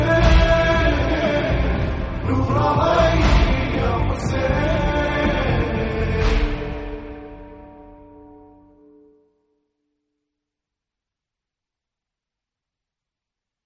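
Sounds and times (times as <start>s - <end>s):
Arabic nawha chant: 0.0s - 7.3s.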